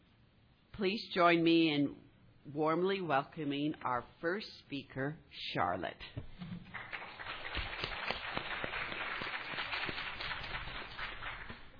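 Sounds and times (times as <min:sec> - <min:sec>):
speech: 0:00.8 - 0:06.5
audience clapping: 0:06.6 - 0:11.7.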